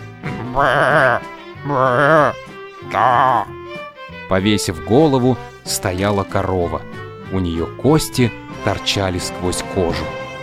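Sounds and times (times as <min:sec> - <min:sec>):
scruffy goat bleating while grazing dusty grass by a pavement: 0:00.2 - 0:03.5
speech: 0:00.6 - 0:03.6, 0:04.3 - 0:10.2.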